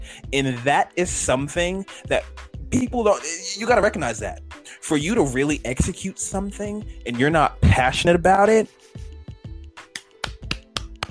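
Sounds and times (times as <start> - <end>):
speech: 0.3 - 9.1
finger snapping: 9.8 - 11.1.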